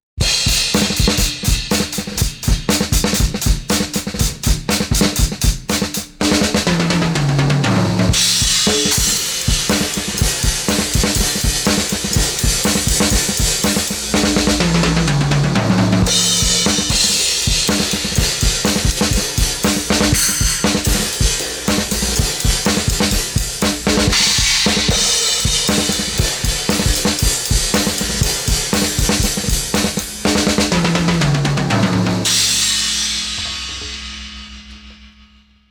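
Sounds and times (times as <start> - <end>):
boosted drums: 0.2 - 35.6.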